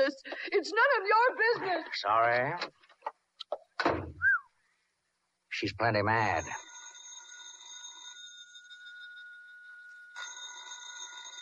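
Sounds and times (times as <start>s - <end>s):
speech: 0.0s - 2.8s, 5.6s - 6.7s
telephone bell ringing: 6.3s - 11.3s.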